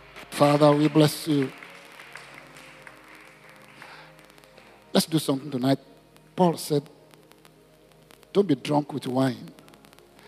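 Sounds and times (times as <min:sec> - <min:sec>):
church congregation clapping hands during a worship service: 0:00.0 - 0:06.8
speech: 0:00.3 - 0:01.6, 0:05.1 - 0:07.0, 0:08.4 - 0:09.6.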